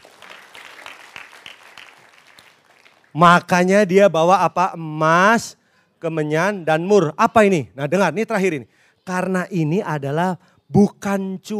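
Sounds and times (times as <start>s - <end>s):
audience applauding: 0.0s - 3.2s
speech: 3.1s - 11.5s.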